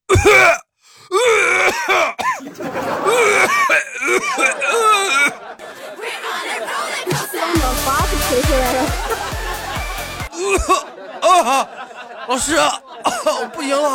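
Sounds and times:
exaggerated fake severe cough: 0:00.0 - 0:02.4, 0:03.0 - 0:05.4, 0:10.3 - 0:10.9
laughter: 0:02.2 - 0:13.9
speech: 0:03.5 - 0:04.9, 0:12.3 - 0:13.9.

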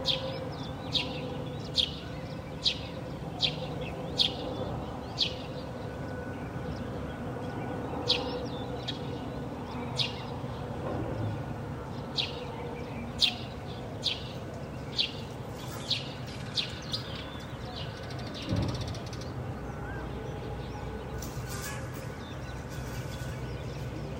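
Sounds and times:
birds chirping: 0:00.0 - 0:24.1.

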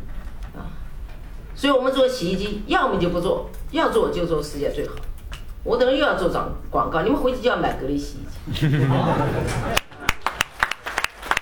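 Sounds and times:
speech: 0:01.6 - 0:09.8
laughter: 0:08.5 - 0:10.4
scattered audience handclaps: 0:09.7 - 0:11.4.

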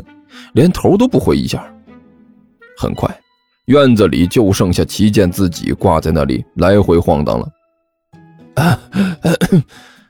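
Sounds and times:
speech: 0:00.5 - 0:01.8, 0:02.8 - 0:07.6, 0:08.6 - 0:09.9
person performing dry forced coughs: 0:08.6 - 0:09.8.

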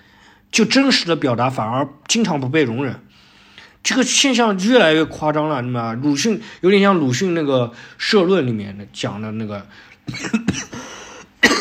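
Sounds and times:
speech: 0:00.5 - 0:03.1, 0:03.8 - 0:11.5
cough: 0:10.0 - 0:11.5.

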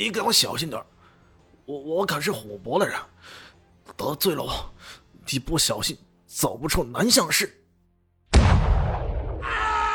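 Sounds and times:
speech: 0:00.0 - 0:00.9, 0:01.7 - 0:07.6
single loud gunshot fired into a man's leg: 0:08.3 - 0:09.9.

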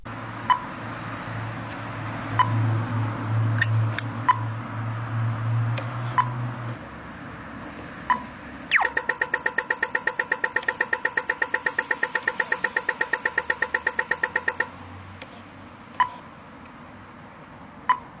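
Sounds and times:
Australian pedestrian crossing signal ticking and clicking: 0:00.0 - 0:04.6, 0:05.7 - 0:06.5, 0:08.0 - 0:15.3, 0:17.8 - 0:18.1
low traffic rumble: 0:00.0 - 0:18.1.

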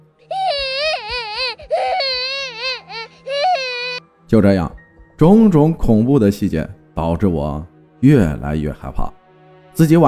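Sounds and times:
child crying: 0:00.3 - 0:04.0
speech: 0:04.3 - 0:09.2, 0:09.8 - 0:10.0.

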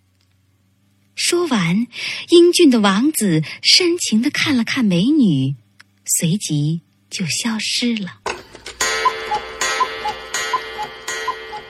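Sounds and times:
speech: 0:01.3 - 0:08.2
clock ticking: 0:08.6 - 0:11.6.

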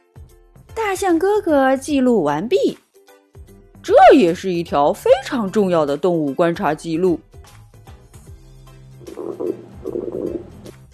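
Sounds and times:
speech: 0:00.8 - 0:02.8, 0:03.8 - 0:07.6
stomach rumbling: 0:09.0 - 0:10.8.

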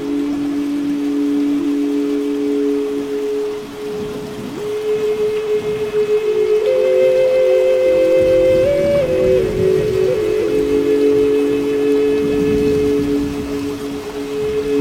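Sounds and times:
flute holding long sustained low notes: 0:00.0 - 0:14.7
steady rain: 0:00.0 - 0:14.7.

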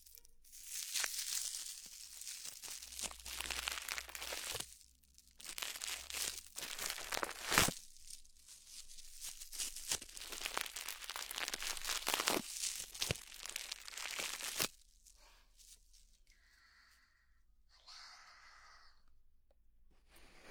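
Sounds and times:
foam wrap rubbed and crumpled: 0:00.0 - 0:16.3.

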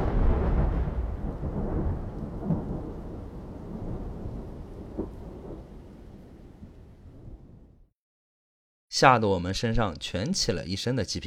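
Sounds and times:
dull heavy thunderclap: 0:00.0 - 0:07.9
speech: 0:09.0 - 0:11.2.

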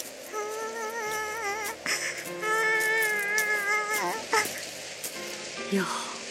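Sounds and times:
baby mermaid crying: 0:00.3 - 0:04.7
speech: 0:05.7 - 0:06.1.

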